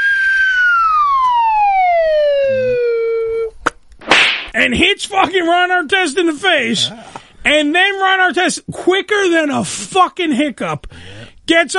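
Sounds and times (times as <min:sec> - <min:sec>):
slide whistle descending glide: 0:00.0 - 0:03.5
sharp pop: 0:03.6 - 0:04.6
speech: 0:04.6 - 0:11.7.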